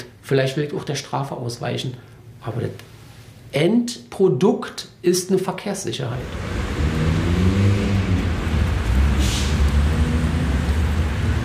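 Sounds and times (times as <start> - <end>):
speech: 0.0 - 6.7
city street traffic rumble near train station: 6.2 - 11.4.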